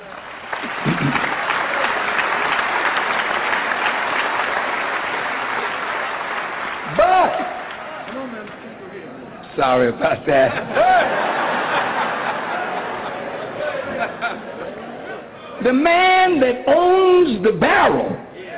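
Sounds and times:
audience applause: 0:00.0 - 0:09.2, 0:10.7 - 0:14.8
speech: 0:09.6 - 0:11.2, 0:15.6 - 0:18.2
laughter: 0:10.0 - 0:15.6.

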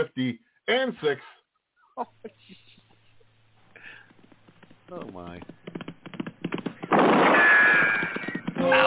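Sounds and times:
speech: 0:00.0 - 0:01.4, 0:02.0 - 0:02.7, 0:04.9 - 0:05.8
gunshot: 0:06.8 - 0:08.7.

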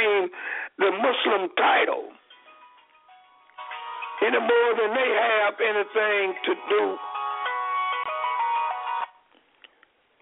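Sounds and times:
speech: 0:00.2 - 0:02.2, 0:04.2 - 0:07.2
cell phone ringtone: 0:02.2 - 0:04.4, 0:06.9 - 0:09.2.

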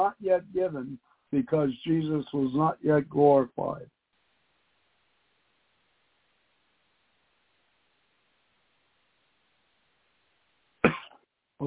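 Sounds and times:
speech: 0:00.0 - 0:04.0
person coughing and choking: 0:10.8 - 0:11.2.

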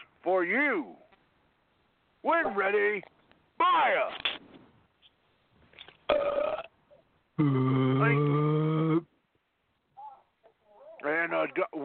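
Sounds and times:
speech: 0:00.2 - 0:01.0, 0:02.2 - 0:04.3, 0:07.4 - 0:08.4
belch: 0:06.1 - 0:06.7, 0:07.4 - 0:09.1.

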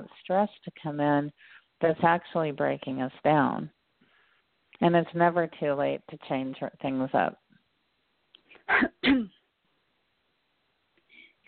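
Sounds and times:
speech: 0:00.1 - 0:03.8, 0:04.8 - 0:07.4, 0:08.7 - 0:09.4
person coughing: 0:08.6 - 0:09.4.

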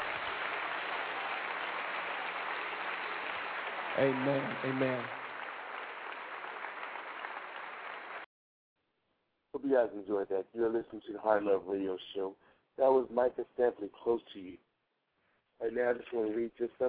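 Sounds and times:
audience clapping hands: 0:00.0 - 0:08.3
speech: 0:04.0 - 0:05.2, 0:09.6 - 0:14.6, 0:15.6 - 0:16.8.

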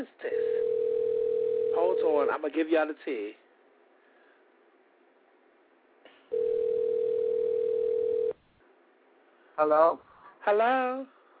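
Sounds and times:
telephone dial tone after call dropped: 0:00.4 - 0:01.9, 0:06.3 - 0:08.4
speech: 0:02.0 - 0:03.4, 0:09.6 - 0:11.2.

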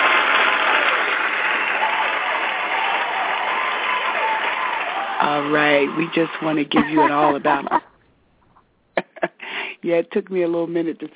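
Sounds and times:
crowd applause: 0:00.0 - 0:07.8
speech: 0:05.2 - 0:07.9, 0:09.8 - 0:11.1
laughter: 0:06.0 - 0:08.0, 0:09.0 - 0:09.4.

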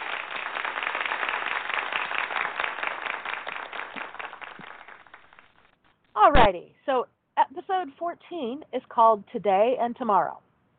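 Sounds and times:
small applause sound effect: 0:00.0 - 0:05.8
speech: 0:06.3 - 0:10.5.

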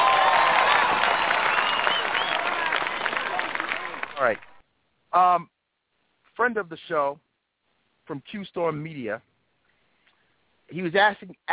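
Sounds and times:
crowd applauding: 0:00.0 - 0:04.6
speech: 0:05.1 - 0:05.5, 0:06.4 - 0:07.3, 0:08.1 - 0:09.3, 0:10.7 - 0:11.5.

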